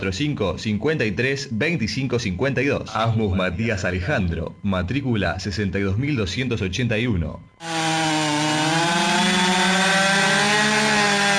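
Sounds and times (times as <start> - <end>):
speech: 0.0 - 7.9
Stihl chainsaw running in a radio advert: 7.6 - 11.3.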